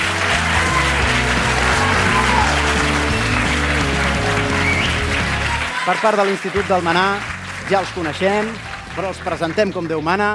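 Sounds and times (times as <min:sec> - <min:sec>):
audience applause: 0:00.0 - 0:10.3
speech: 0:05.9 - 0:10.3.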